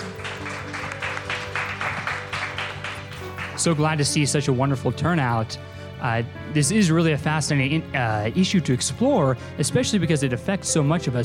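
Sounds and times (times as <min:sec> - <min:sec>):
audience applause: 0:00.0 - 0:04.2
speech: 0:03.6 - 0:11.2.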